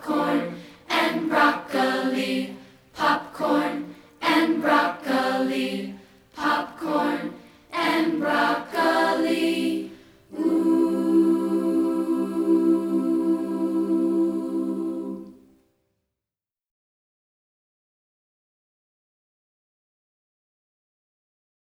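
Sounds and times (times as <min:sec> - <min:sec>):
a cappella singing: 0:00.0 - 0:15.5.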